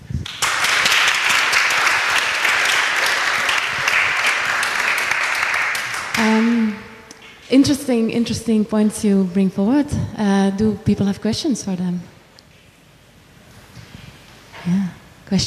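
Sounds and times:
audience clapping: 0.2s - 6.6s
speech: 7.5s - 12.1s.

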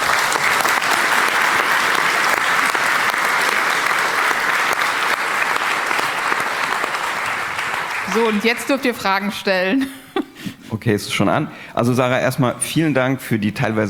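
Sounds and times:
audience applauding: 0.0s - 9.4s
speech: 8.2s - 10.0s, 10.7s - 13.8s.

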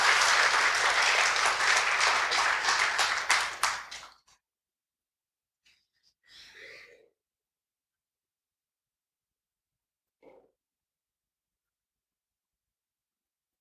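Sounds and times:
audience clapping: 0.0s - 4.3s.

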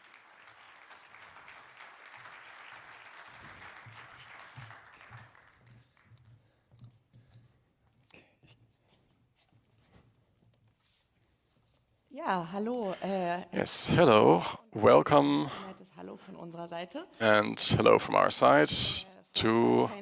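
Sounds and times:
audience clapping: 0.0s - 6.1s, 13.6s - 15.6s, 17.2s - 20.0s
speech: 12.2s - 15.7s, 16.4s - 20.0s.

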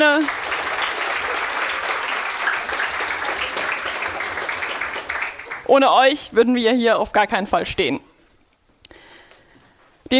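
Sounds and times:
speech: 0.0s - 0.5s, 5.7s - 8.1s
audience applause: 0.0s - 5.7s.

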